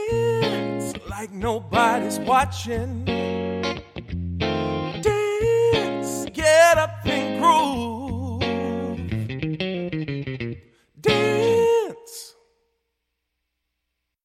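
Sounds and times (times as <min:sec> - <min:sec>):
man singing: 0:00.0 - 0:03.5, 0:04.5 - 0:09.3, 0:11.0 - 0:12.5
electric guitar: 0:00.0 - 0:12.3.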